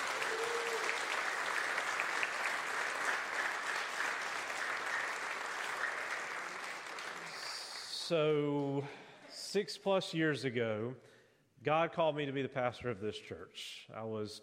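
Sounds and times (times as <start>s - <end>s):
audience applause: 0.0s - 7.9s
speech: 8.1s - 14.4s.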